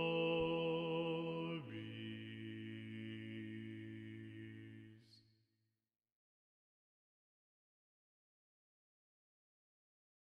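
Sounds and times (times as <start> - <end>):
choir singing: 0.0 - 5.2.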